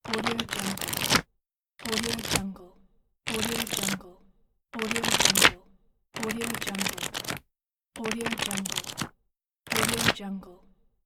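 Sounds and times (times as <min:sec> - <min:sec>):
book pages flipping: 0:00.1 - 0:01.2, 0:01.8 - 0:02.4, 0:03.3 - 0:04.0, 0:04.8 - 0:05.6, 0:06.2 - 0:07.4, 0:08.0 - 0:09.1, 0:09.7 - 0:10.2.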